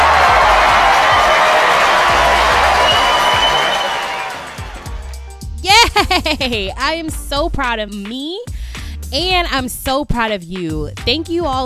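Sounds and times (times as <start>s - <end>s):
steady low thumping beat: 0.0s - 3.5s, 4.5s - 10.0s
applause and cheering sound effect: 0.0s - 5.4s
speech: 6.2s - 8.4s, 9.1s - 11.6s.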